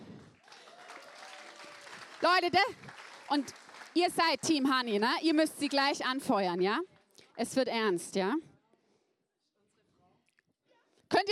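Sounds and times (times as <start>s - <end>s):
audience applause: 0.0s - 6.0s
speech: 2.2s - 8.5s.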